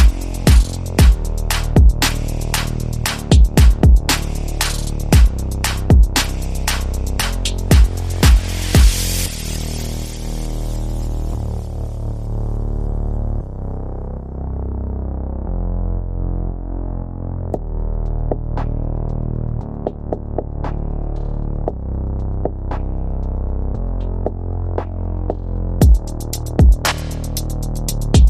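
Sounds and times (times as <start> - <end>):
drums: 0.0 - 9.4, 25.8 - 28.2
bass: 0.0 - 28.2
sound effects: 2.0 - 12.2.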